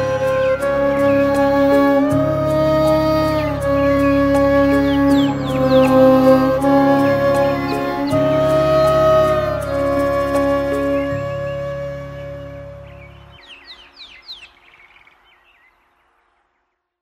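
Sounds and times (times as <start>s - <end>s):
violin in instrumental music: 0.0s - 13.4s
flute in instrumental music: 0.0s - 14.1s.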